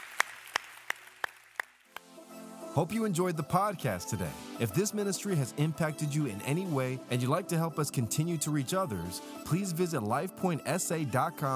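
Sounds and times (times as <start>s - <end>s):
audience applause: 0.0s - 1.8s
speech: 2.8s - 11.5s.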